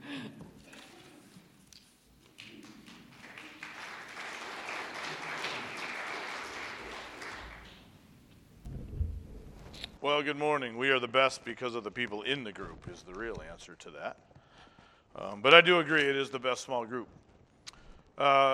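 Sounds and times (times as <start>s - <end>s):
audience clapping to welcome a speaker: 2.1s - 8.3s
speech: 10.0s - 14.3s, 15.2s - 17.2s, 18.2s - 18.5s.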